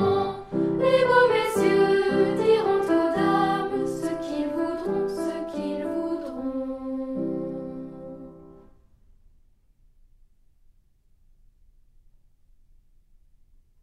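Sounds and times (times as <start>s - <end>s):
chanting: 0.0s - 8.6s
piano: 0.0s - 9.0s.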